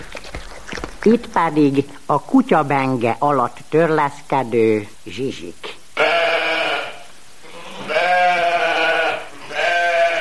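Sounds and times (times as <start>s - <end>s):
speech: 1.0s - 5.6s
lamb bleating: 6.0s - 10.1s.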